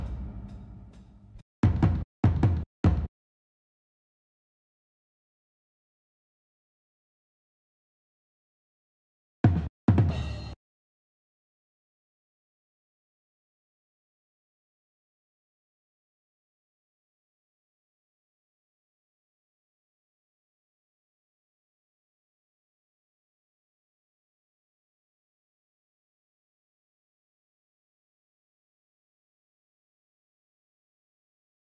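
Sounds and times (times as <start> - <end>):
drums: 0.0 - 3.1, 9.4 - 10.6.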